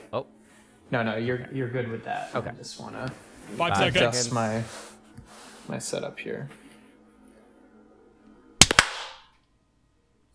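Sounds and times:
speech: 0.1s - 6.6s
hand claps for audio sync: 8.6s - 9.3s.

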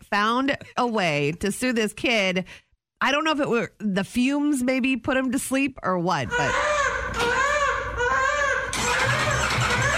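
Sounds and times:
speech: 0.1s - 7.4s
motorcycle engine starting up: 8.7s - 9.9s.

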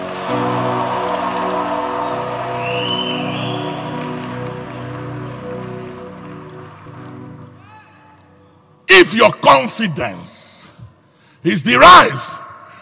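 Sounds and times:
audience clapping: 0.0s - 7.7s
speech: 9.0s - 10.4s, 11.4s - 12.4s.

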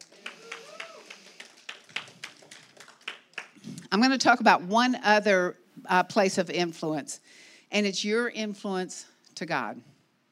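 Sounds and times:
audience clapping: 0.0s - 3.8s
speech: 3.9s - 9.9s.

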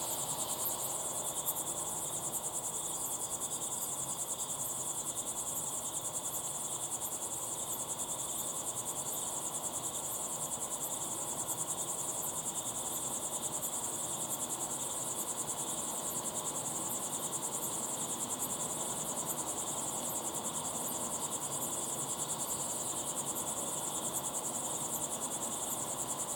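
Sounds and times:
soft constant hiss: 0.0s - 1.3s
crickets chirping in a trilling chorus: 0.0s - 26.3s.

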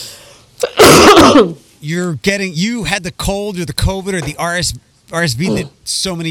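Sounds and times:
person coughing: 0.6s - 1.6s
speech: 1.3s - 6.2s.

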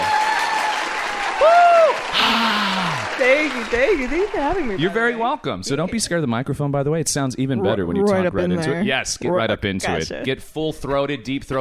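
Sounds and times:
applause welcoming a guest: 0.0s - 5.1s
speech: 3.2s - 11.5s.

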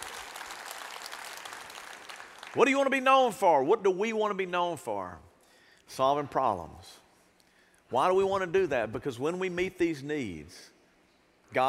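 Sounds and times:
audience applause: 0.0s - 2.6s
speech: 2.6s - 5.3s, 5.9s - 7.0s, 7.9s - 10.7s.

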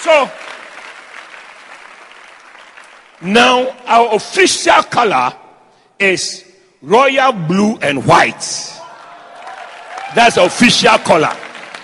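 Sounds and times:
speech: 0.0s - 0.5s, 3.2s - 5.4s, 6.0s - 8.8s, 10.1s - 11.4s
church congregation clapping hands for the Lord: 0.0s - 4.3s, 8.9s - 11.8s.

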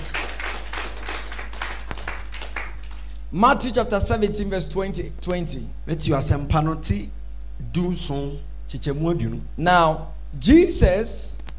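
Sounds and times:
group clapping in rhythm: 0.0s - 3.2s
speech: 3.3s - 11.4s.

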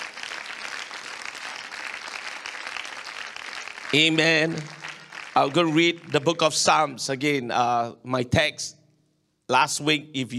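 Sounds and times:
audience clapping hands: 0.0s - 6.9s
speech: 3.9s - 4.8s, 5.4s - 8.8s, 9.5s - 10.3s.

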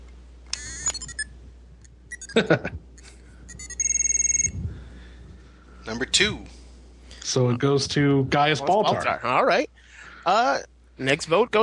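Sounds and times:
toy R2-D2 droid beeping: 0.6s - 1.3s, 2.1s - 2.4s, 3.5s - 4.6s
laughter: 2.3s - 2.8s
speech: 2.4s - 2.8s, 5.9s - 6.6s, 7.3s - 11.6s.

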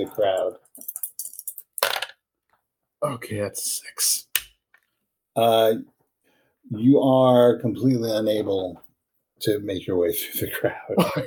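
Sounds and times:
speech: 0.0s - 1.0s, 3.0s - 4.3s, 5.4s - 5.9s, 6.7s - 8.8s, 9.4s - 11.2s
dice clattering across a hard surface: 0.3s - 2.2s.

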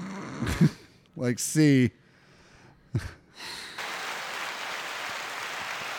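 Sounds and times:
speech: 0.4s - 2.0s, 2.9s - 3.7s
applause sound effect from sound pad: 3.8s - 5.9s.

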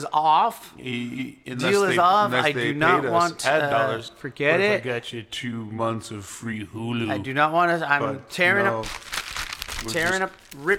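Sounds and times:
speech: 0.0s - 9.2s, 9.8s - 10.7s
paper contract being torn up: 8.6s - 10.7s.

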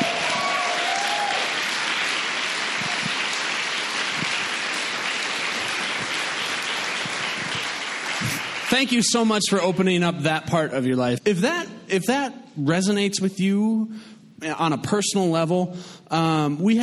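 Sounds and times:
audience applause for a speaker: 0.0s - 9.8s
speech: 8.8s - 16.8s.

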